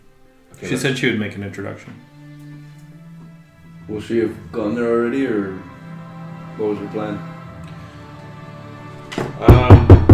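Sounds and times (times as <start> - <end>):
speech: 0.6 - 2.1, 3.9 - 5.7, 6.6 - 7.3
knock on a door: 9.2 - 10.1.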